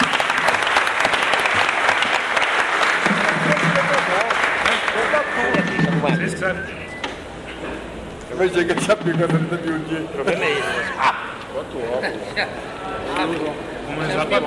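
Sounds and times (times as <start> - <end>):
audience applause: 0.0 - 6.0
speech: 6.4 - 6.9, 8.4 - 14.4.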